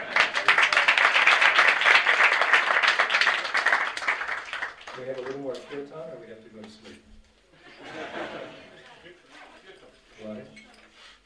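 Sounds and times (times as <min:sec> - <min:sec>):
laughter: 0:00.0 - 0:00.9, 0:07.5 - 0:10.1
audience round of applause: 0:00.0 - 0:05.6
speech: 0:05.0 - 0:07.1.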